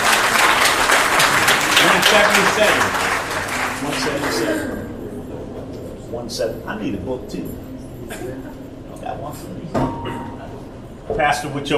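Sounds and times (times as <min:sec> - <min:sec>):
audience clapping hands: 0:00.0 - 0:04.9
speech: 0:02.1 - 0:03.0, 0:03.8 - 0:04.8, 0:06.1 - 0:10.3, 0:11.1 - 0:11.7.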